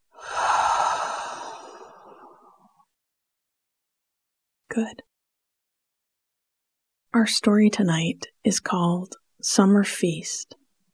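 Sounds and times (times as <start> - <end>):
audible breathing: 0.1 - 2.7
speech: 4.7 - 5.1, 7.1 - 10.6.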